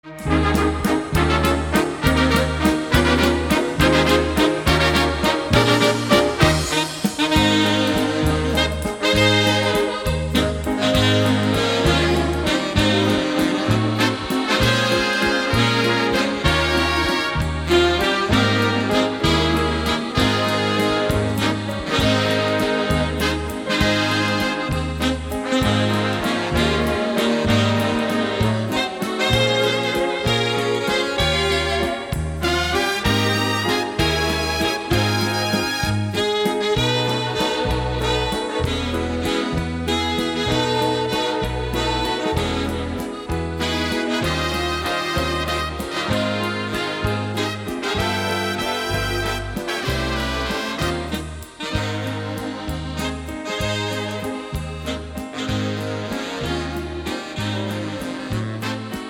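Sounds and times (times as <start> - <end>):
waltz medley: 0.0 - 59.0.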